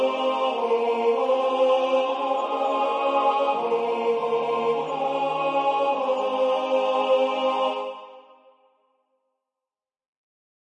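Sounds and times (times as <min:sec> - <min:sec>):
tenor singing a hymn: 0:00.0 - 0:08.4.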